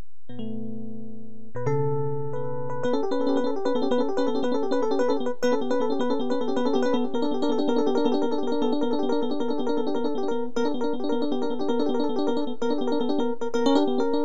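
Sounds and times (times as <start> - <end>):
jazzy MIDI improvisation: 1.6 - 14.2.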